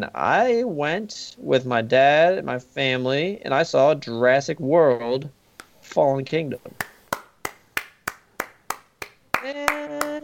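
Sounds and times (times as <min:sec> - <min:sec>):
speech: 0:00.0 - 0:06.9
hand clapping: 0:06.7 - 0:10.2.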